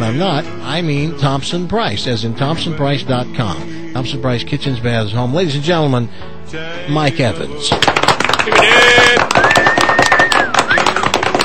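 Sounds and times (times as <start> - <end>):
speech: 0.1 - 9.4
crowd cheering and applauding: 7.7 - 11.4.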